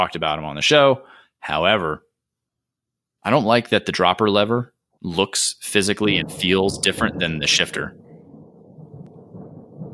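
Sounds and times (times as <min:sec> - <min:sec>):
speech: 0:00.0 - 0:02.0, 0:03.2 - 0:08.0
rolling thunder from a nearby storm: 0:06.0 - 0:09.9.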